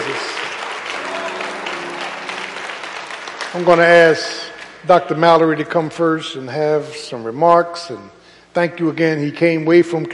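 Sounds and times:
audience applause: 0.0s - 4.9s
speech: 3.5s - 10.1s.

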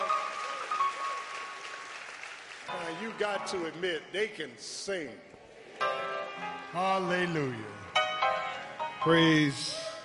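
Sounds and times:
audience hand clapping for the choir: 0.0s - 3.6s
speech: 3.0s - 6.0s, 6.7s - 9.8s.

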